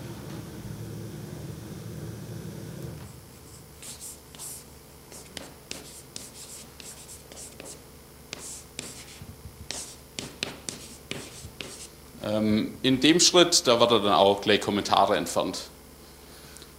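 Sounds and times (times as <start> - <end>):
soft hum: 0.0 - 16.7
handwriting with pen strokes on a surface: 3.5 - 11.9
speech: 12.3 - 15.7.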